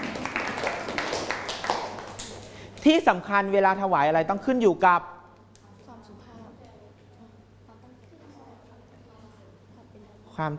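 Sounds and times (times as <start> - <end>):
students clapping for a classmate: 0.0 - 2.8
speech: 2.8 - 5.2, 10.4 - 10.5.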